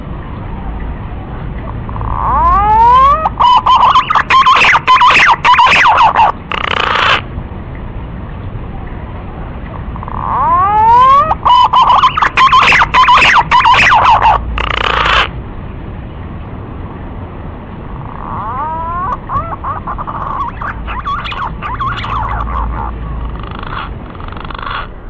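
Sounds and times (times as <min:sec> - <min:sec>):
green pigeon lure call of sweeping quavering whistles: 0:01.9 - 0:07.2, 0:10.0 - 0:15.3, 0:18.1 - 0:22.9.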